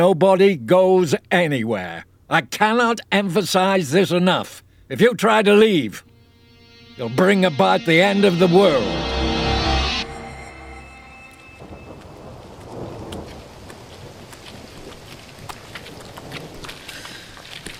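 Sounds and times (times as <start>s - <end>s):
speech: 0.0s - 6.1s, 7.0s - 9.2s
storm with rain: 11.6s - 17.7s.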